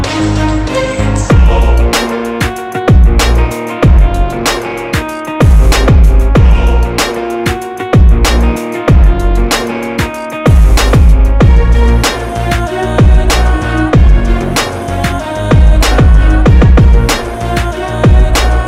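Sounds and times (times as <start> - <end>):
hard motivational rock inspired rap beat: 0.1 - 18.6.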